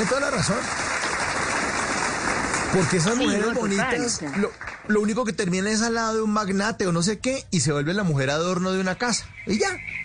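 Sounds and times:
speech: 0.0 - 1.0, 2.7 - 10.0
applause: 0.0 - 5.3.

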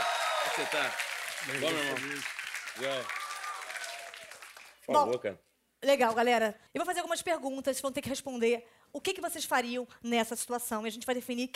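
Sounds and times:
round of applause: 0.0 - 4.9
speech: 0.6 - 3.2, 4.9 - 11.5.

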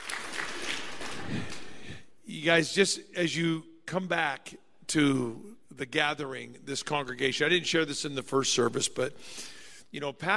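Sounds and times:
audience applauding: 0.0 - 2.0
speech: 2.4 - 10.3.

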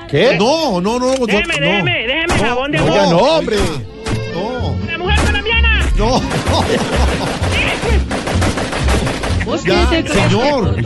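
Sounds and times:
speech: 0.1 - 5.2, 6.0 - 8.2, 9.5 - 10.8
salvo of gunshots: 5.1 - 5.5, 6.1 - 10.0
laughter: 5.9 - 8.3, 9.0 - 10.8.

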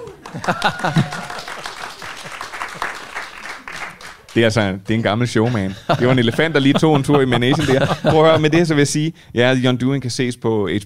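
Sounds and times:
laughter: 0.0 - 3.1, 5.0 - 8.8
live studio audience applause: 0.0 - 5.2
speech: 0.4 - 1.3, 4.4 - 10.8.

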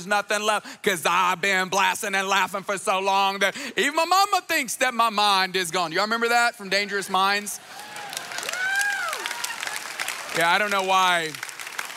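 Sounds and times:
speech: 0.0 - 7.8, 10.4 - 11.5
audience clapping: 7.6 - 11.9
whooping: 7.7 - 10.3.

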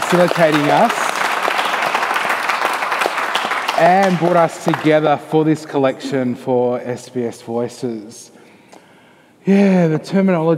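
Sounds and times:
round of applause from a group: 0.0 - 5.2
speech: 0.1 - 1.0, 3.8 - 8.4, 9.4 - 10.5.

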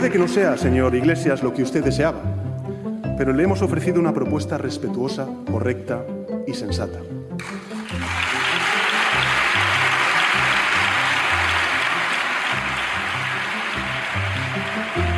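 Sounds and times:
speech: 0.0 - 2.5, 3.2 - 7.6
crowd applause: 7.4 - 15.1.

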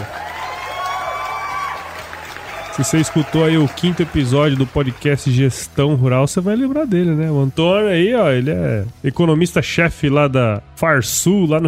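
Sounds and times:
crowd applause and cheering: 0.0 - 5.6
speech: 2.8 - 11.6.

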